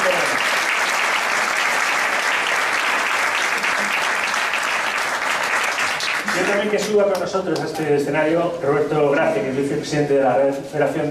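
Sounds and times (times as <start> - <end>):
loud audience applause: 0.0 - 7.2
speech: 6.6 - 11.0.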